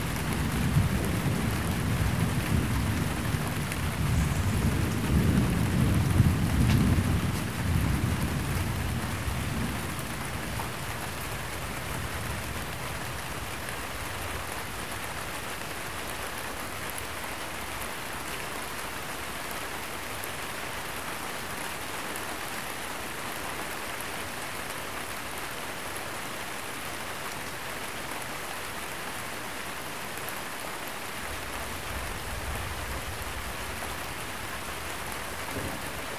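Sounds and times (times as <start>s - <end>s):
thunder: 0.0s - 12.6s, 31.8s - 36.1s
light rain: 0.0s - 36.1s.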